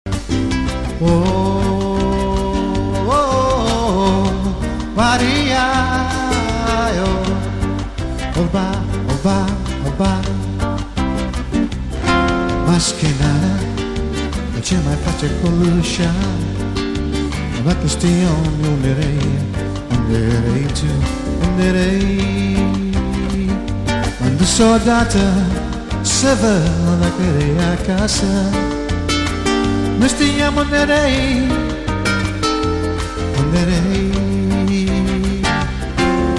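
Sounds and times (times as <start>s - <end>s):
Latin jazz music: 0.1s - 36.3s.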